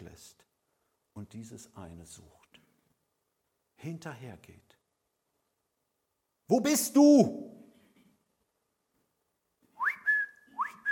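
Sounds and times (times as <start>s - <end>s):
speech: 1.2s - 2.4s, 3.8s - 4.8s, 6.5s - 7.6s
person whistling like a shepherd calling sheep: 9.8s - 10.9s.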